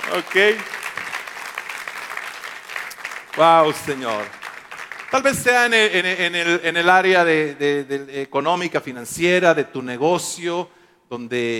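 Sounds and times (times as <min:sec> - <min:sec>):
audience applauding: 0:00.0 - 0:06.3
speech: 0:00.1 - 0:00.8, 0:03.4 - 0:04.4, 0:05.1 - 0:11.5.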